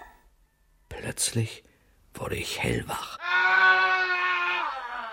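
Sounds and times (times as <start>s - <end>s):
speech: 1.2s - 3.2s
person screaming: 3.2s - 5.1s.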